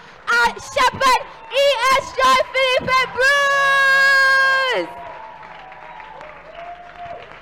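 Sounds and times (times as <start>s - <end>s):
audience applause: 0.1s - 7.4s
speech: 0.5s - 4.1s, 4.7s - 5.0s.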